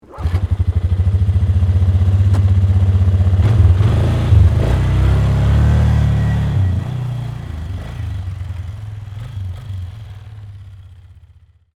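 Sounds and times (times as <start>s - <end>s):
Polaris 500cc four-wheeler ATV starting up: 0.0s - 11.6s.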